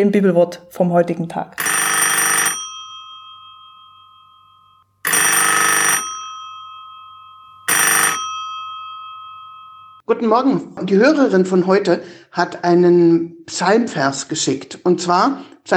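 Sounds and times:
speech: 0.0 - 1.8, 10.1 - 15.7
telephone ringing: 1.6 - 10.0.

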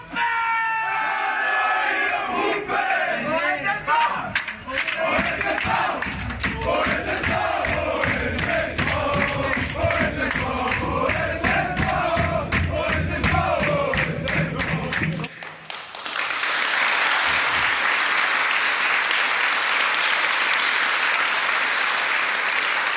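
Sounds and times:
cheering and applause: 0.0 - 22.9
football team chanting and singing in locker room: 0.9 - 15.3.

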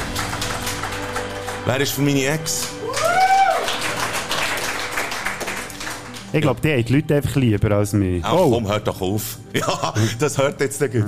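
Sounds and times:
audience applause: 0.0 - 6.4
speech: 1.6 - 2.8, 6.3 - 11.0
laughter: 9.5 - 10.6.

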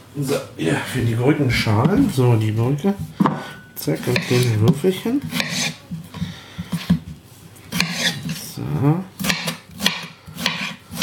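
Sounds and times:
speech: 0.2 - 3.2, 3.8 - 5.7, 8.8 - 9.1
food prep on a new wooden cutting board: 4.1 - 5.8, 7.8 - 8.2, 9.2 - 11.0.

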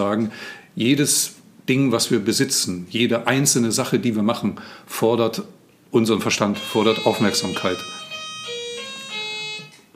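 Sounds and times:
speech: 0.0 - 8.0
doorbell ringing: 6.5 - 9.9.

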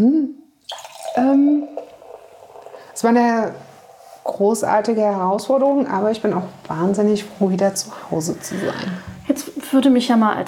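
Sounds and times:
speech: 0.0 - 0.4, 1.2 - 1.6, 3.0 - 3.7, 4.3 - 10.4
champagne being poured into a glass: 0.6 - 4.8.

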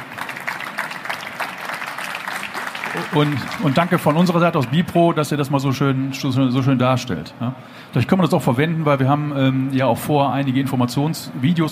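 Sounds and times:
group applause: 0.0 - 4.6
speech: 3.0 - 11.6.

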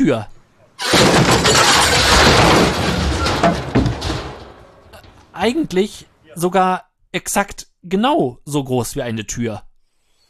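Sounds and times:
speech: 0.0 - 2.9, 5.4 - 9.7
wall collapsing: 0.8 - 5.7.

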